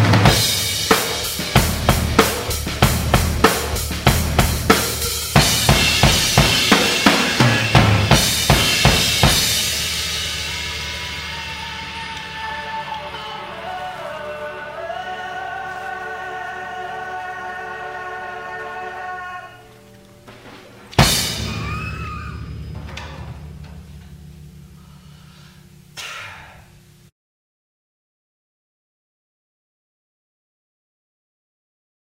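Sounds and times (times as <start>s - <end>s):
drum outtakes: 0.0s - 13.3s, 20.3s - 26.0s.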